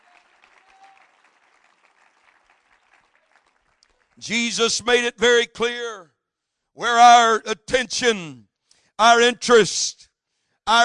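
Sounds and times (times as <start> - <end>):
audience clapping hands in praise: 0.0 - 4.3
speech: 4.2 - 5.9, 6.8 - 10.1, 10.7 - 10.8.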